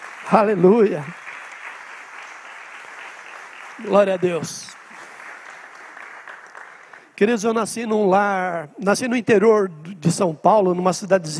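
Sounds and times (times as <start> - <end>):
audience applause: 0.0 - 7.2
speech: 0.2 - 1.2, 3.8 - 4.8, 7.2 - 11.3.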